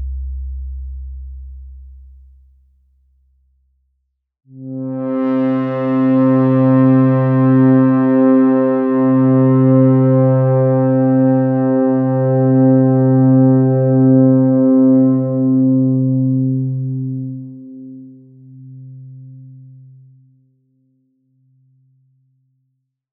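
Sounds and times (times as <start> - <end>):
ARP 2600 synthesizer pads: 4.6 - 17.3.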